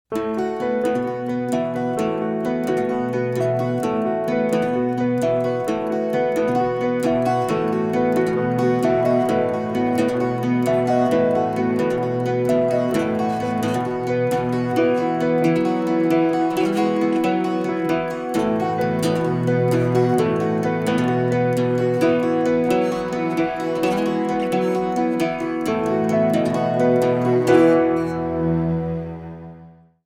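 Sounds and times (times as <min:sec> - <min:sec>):
acoustic studio mix: 0:00.1 - 0:30.0.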